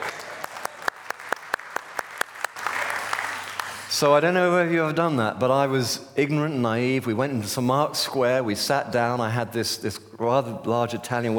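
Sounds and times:
small audience applause: 0:00.0 - 0:03.9
speech: 0:03.9 - 0:11.3.

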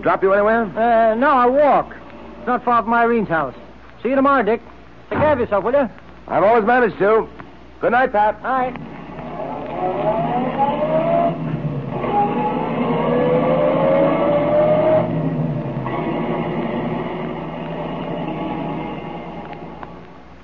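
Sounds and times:
speech: 0:00.0 - 0:08.9
car engine driving as an old-time radio drama effect: 0:08.7 - 0:20.4.

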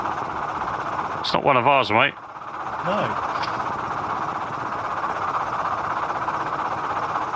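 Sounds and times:
old helicopter engine and rotor roaring: 0:00.0 - 0:07.3
speech: 0:01.2 - 0:02.2, 0:02.8 - 0:03.3.

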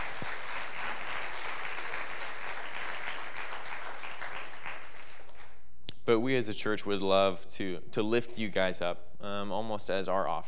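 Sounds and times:
crowd applauding: 0:00.0 - 0:05.6
speech: 0:06.1 - 0:10.4.

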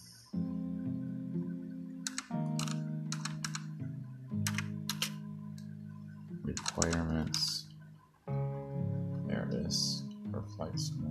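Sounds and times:
steady low musical drone: 0:00.0 - 0:11.0
typing a search on a computer keyboard: 0:02.0 - 0:03.7, 0:04.4 - 0:05.2, 0:06.6 - 0:07.6
speech: 0:06.8 - 0:07.6.

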